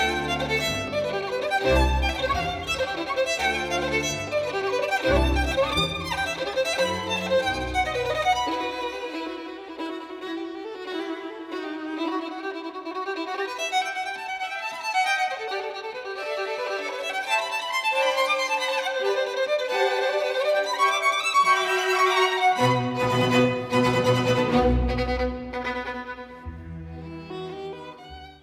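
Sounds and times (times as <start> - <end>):
violin concerto excerpt: 0.0 - 28.4.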